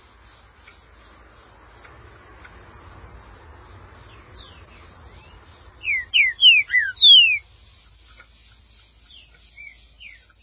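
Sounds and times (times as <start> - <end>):
green-winged saltator whistles: 5.8 - 7.5.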